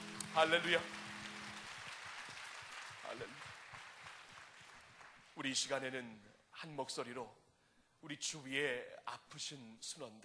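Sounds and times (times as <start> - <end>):
audience applause: 0.0 - 5.4
speech: 0.4 - 1.0, 3.1 - 3.6, 5.4 - 7.4, 8.0 - 10.2.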